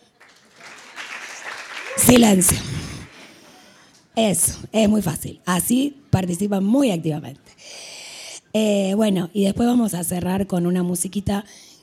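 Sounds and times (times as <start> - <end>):
audience clapping: 0.0 - 4.1
speech: 2.0 - 2.8, 4.2 - 7.6, 8.5 - 11.7.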